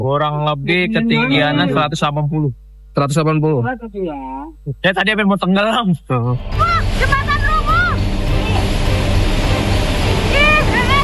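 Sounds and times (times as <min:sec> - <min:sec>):
speech: 0:00.0 - 0:07.3
rushing flood water of the Cikaret river: 0:06.8 - 0:11.0.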